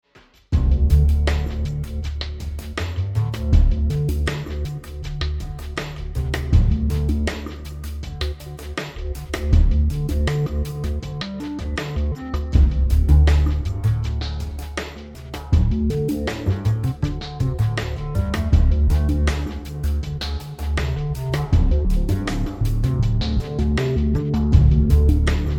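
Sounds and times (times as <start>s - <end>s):
ambient music: 0.6s - 25.5s.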